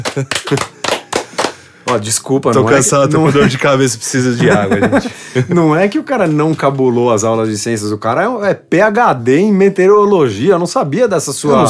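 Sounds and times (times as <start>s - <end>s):
speech: 0.0s - 0.7s, 1.9s - 11.6s
hands clapping: 0.0s - 2.2s
laughter: 0.0s - 5.6s.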